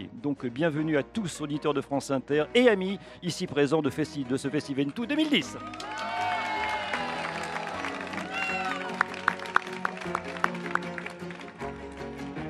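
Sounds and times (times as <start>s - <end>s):
speech: 0.2s - 6.1s
festival crowd applauding and cheering: 4.8s - 12.4s.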